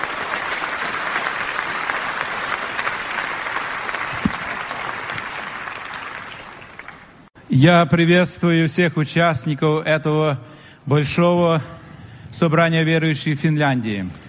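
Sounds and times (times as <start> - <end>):
audience at a conference of believers in Finland applauding a speaker: 0.0 - 7.3
speech: 7.6 - 14.2.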